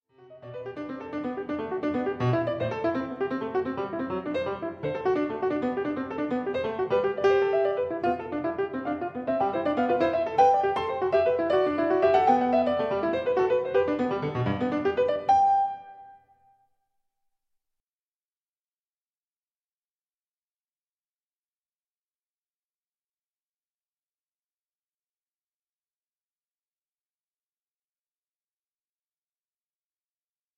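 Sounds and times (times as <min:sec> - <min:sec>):
variation for two keyboards: 0:00.3 - 0:16.3.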